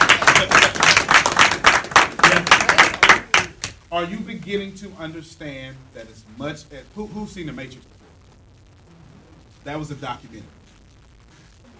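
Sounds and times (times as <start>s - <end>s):
audience clapping: 0.0s - 3.8s
speech: 4.0s - 8.0s, 9.6s - 10.6s.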